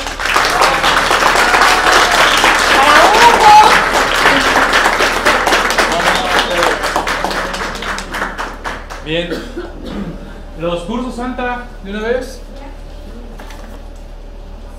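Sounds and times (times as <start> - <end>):
audience applause: 0.0 - 9.3
speech: 9.1 - 9.6, 10.6 - 12.4.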